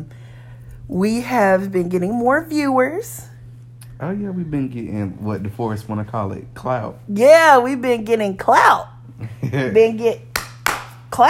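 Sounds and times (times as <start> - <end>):
speech: 0.9 - 3.3, 4.0 - 10.3
sharp hand claps: 10.3 - 11.2.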